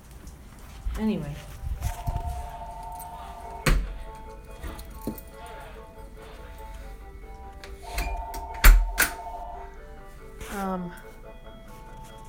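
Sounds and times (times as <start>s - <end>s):
speech: 1.0s - 1.5s
telephone ringing: 1.9s - 5.5s, 7.3s - 10.0s.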